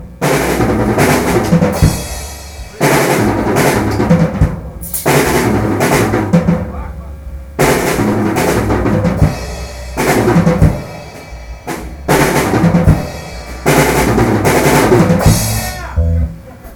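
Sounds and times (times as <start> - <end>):
drums: 0.0 - 16.7.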